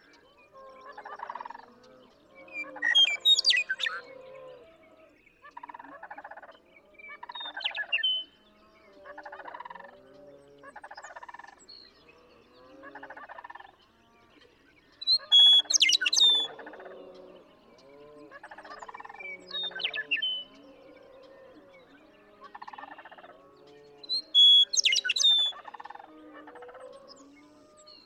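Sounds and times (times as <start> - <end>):
western meadowlark singing: 2.5 - 4.0, 7.2 - 8.3, 15.0 - 16.7, 18.5 - 21.1, 24.0 - 26.0.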